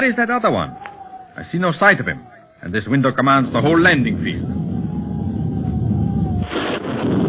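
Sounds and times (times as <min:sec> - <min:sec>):
speech: 0:00.0 - 0:04.6
thunder: 0:04.0 - 0:07.2.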